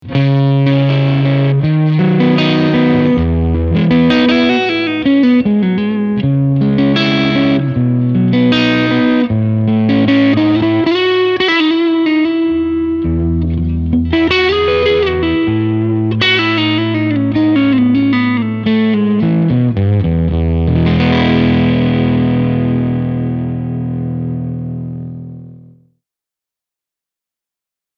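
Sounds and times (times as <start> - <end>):
Fender Tone Master Twin Reverb guitar amplifier at full volume with vibrato: 0.0 - 26.0.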